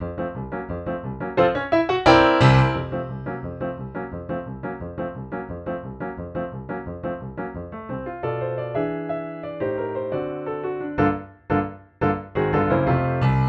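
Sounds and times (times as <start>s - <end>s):
full musical accompaniment in F major: 1.2s - 4.5s, 8.0s - 13.4s.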